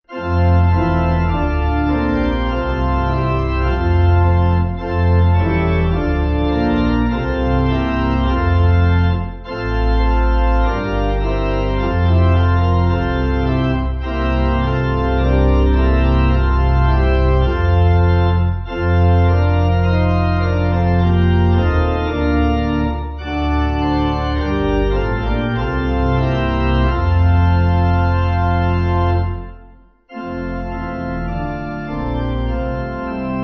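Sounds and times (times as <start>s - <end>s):
church pipe organ backing music: 0.0s - 33.4s.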